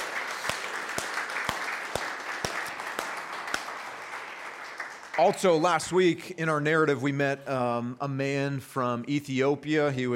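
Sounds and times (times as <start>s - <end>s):
audience applause: 0.0s - 5.8s
speech: 5.2s - 10.1s.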